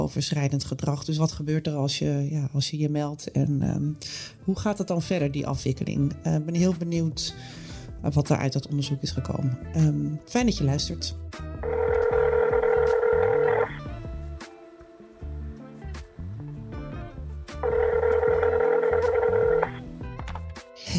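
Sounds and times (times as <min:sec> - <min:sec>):
speech: 0:00.1 - 0:11.8
low rhythmic background: 0:03.4 - 0:20.9
telephone ringing tone: 0:11.6 - 0:15.3, 0:17.6 - 0:19.8.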